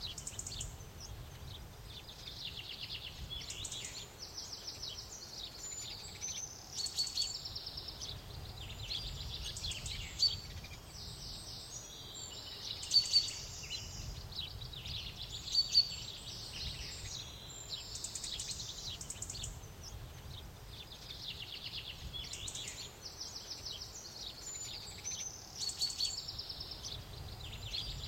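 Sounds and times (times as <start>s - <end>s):
Scottish inn exterior morning ambience: 0.0s - 28.0s.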